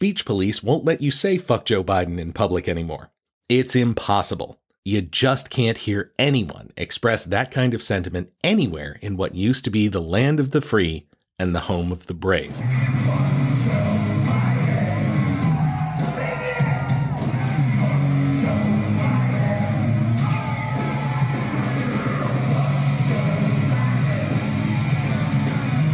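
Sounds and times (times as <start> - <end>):
speech: 0.0 - 13.9
concert crowd yelling a chant: 12.9 - 25.8
shouts and whoops: 14.2 - 18.0.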